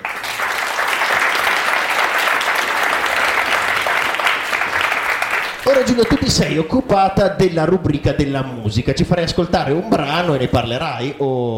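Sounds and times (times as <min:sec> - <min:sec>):
audience applause: 0:00.0 - 0:06.6
speech: 0:05.7 - 0:11.5.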